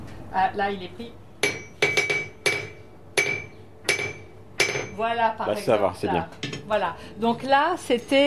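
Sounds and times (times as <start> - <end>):
speech: 0.3 - 1.2, 5.0 - 8.2
hammer striking an anvil: 1.4 - 5.0.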